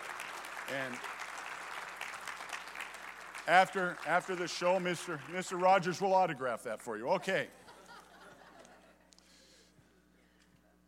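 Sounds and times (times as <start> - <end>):
audience applause: 0.0 - 6.0
speech: 0.7 - 1.2, 3.5 - 7.6
laughter: 7.1 - 9.1.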